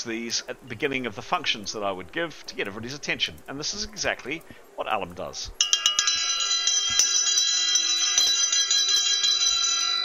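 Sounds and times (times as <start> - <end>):
speech: 0.0 - 5.8
camel bell rung to get a room's attention: 5.6 - 10.0.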